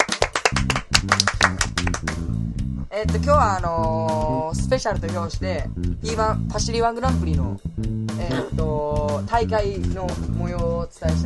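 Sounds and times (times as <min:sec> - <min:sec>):
hand clapping: 0:00.0 - 0:02.3
speech: 0:03.0 - 0:11.2.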